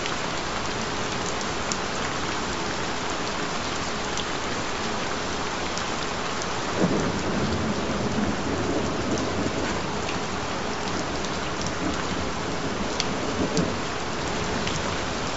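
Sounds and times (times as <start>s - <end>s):
relaxing rain: 0.0s - 15.3s.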